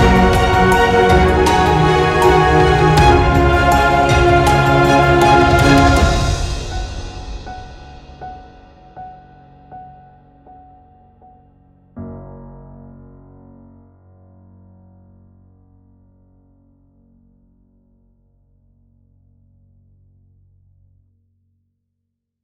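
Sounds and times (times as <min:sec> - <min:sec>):
epic cinematic piano: 0:00.0 - 0:16.2.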